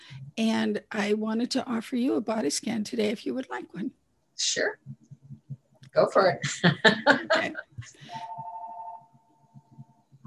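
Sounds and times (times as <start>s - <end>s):
speech: 0.4s - 5.0s, 6.0s - 8.4s
laughter: 6.4s - 8.0s
telephone ringing with a steady mid-pitched electronic tone: 8.1s - 9.2s.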